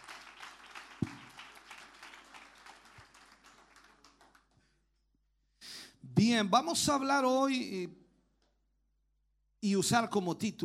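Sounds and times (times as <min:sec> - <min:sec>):
church worship service crowd applauding in praise: 0:00.0 - 0:04.6
speech: 0:06.2 - 0:08.0, 0:09.6 - 0:10.6.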